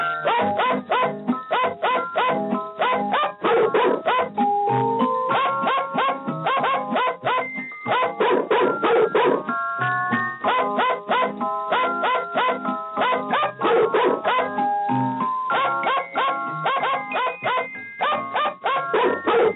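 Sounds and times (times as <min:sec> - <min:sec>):
dog barking a Christmas tune: 0:00.2 - 0:09.6, 0:10.4 - 0:19.5.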